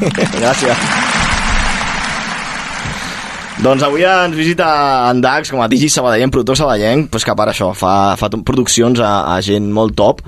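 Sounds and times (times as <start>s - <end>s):
speech: 0.0s - 1.1s, 3.6s - 10.2s
laughter: 0.0s - 3.8s
applause: 0.0s - 4.9s.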